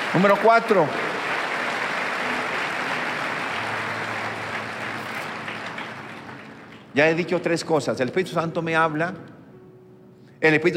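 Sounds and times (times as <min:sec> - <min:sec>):
audience applause: 0:00.0 - 0:07.0
speech: 0:00.1 - 0:01.0, 0:07.0 - 0:09.4, 0:10.4 - 0:10.7.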